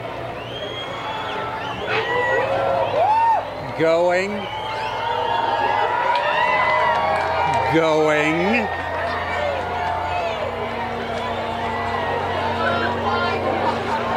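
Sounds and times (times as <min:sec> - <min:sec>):
excited crowd cheering at eclipse totality: 0:00.0 - 0:14.1
speech: 0:03.8 - 0:04.6, 0:07.7 - 0:08.8.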